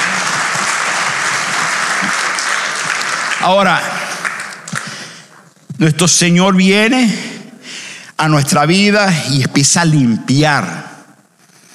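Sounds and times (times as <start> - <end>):
audience applause: 0.0 - 5.4
speech: 3.4 - 4.0, 5.8 - 7.3, 8.2 - 10.9.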